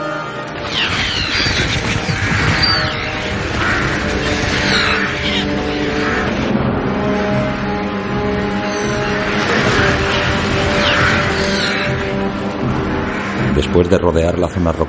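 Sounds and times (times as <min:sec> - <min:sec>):
flock of black birds cawing and screeching while flying low overhead: 0:00.0 - 0:13.5
speech: 0:13.8 - 0:14.8.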